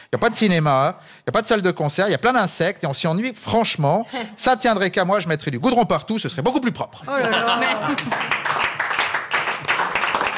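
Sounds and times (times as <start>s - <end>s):
speech: 0.1s - 8.6s
laughter: 7.1s - 8.3s
audience clapping at a live performance: 7.6s - 10.3s.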